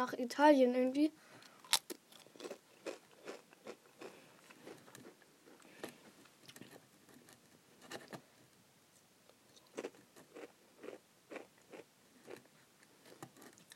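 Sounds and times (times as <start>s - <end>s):
speech: 0.0s - 1.9s
crunchy pizza- and basil-flavoured snacks being eaten: 1.6s - 6.8s, 9.6s - 13.7s.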